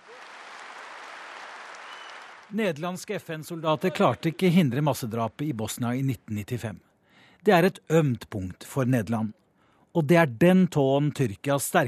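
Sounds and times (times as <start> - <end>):
audience applause at a political rally: 0.0 - 2.6
speech: 2.5 - 9.4, 10.0 - 11.8.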